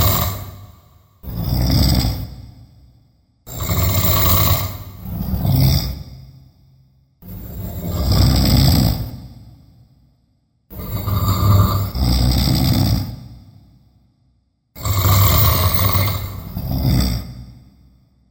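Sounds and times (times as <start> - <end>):
double snoring: 0.0 - 2.3, 3.5 - 6.0, 7.6 - 9.2, 10.7 - 13.3, 14.8 - 17.6.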